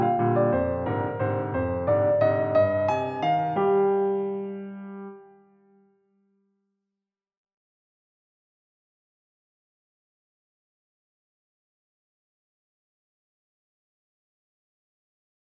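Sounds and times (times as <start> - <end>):
little waltz: 0.1 - 4.2.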